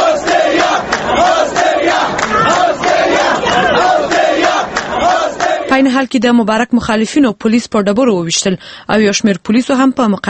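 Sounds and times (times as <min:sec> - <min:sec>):
crowd of Mubarak supporters chanting slogans outside a courtroom: 0:00.0 - 0:05.9
speech: 0:05.8 - 0:10.2.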